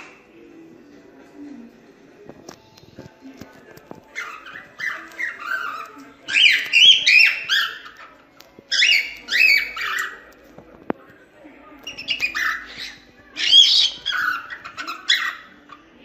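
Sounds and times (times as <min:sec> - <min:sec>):
cockatiels chattering: 0:03.4 - 0:11.0, 0:11.8 - 0:16.0.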